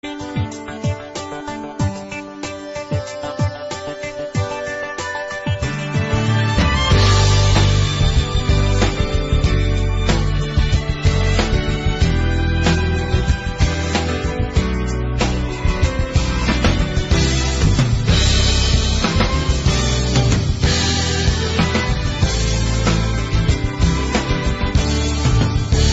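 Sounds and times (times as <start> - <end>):
flower tune: 0.0 - 25.9.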